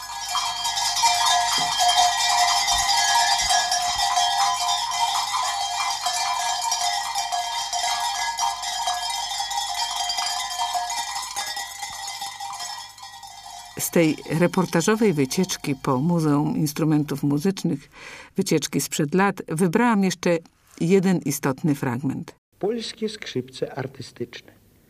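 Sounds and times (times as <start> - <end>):
sheep bells of various sizes ringing: 0.0 - 17.4
speech: 14.0 - 24.6.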